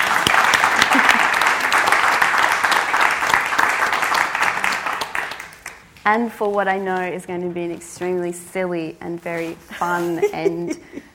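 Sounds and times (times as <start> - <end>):
audience applause: 0.0 - 5.8
speech: 6.0 - 11.1.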